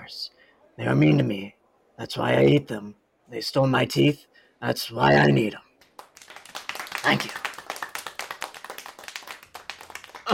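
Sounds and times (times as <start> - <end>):
speech: 0.1 - 5.6, 7.0 - 7.4
audience applause: 5.8 - 10.3.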